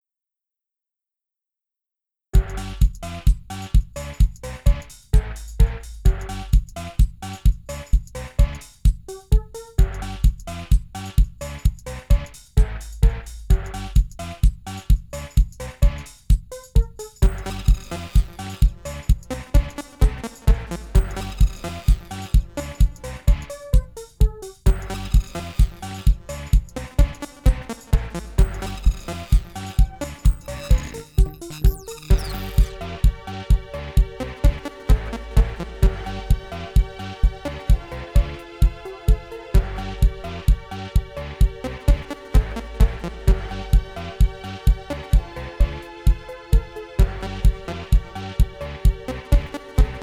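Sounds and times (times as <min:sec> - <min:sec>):
fitness music tuned to 432 Hz: 0:02.4 - 0:50.0.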